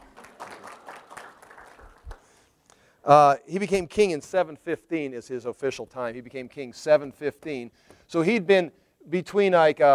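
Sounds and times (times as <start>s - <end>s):
audience applause: 0.0s - 2.3s
speech: 3.1s - 9.9s.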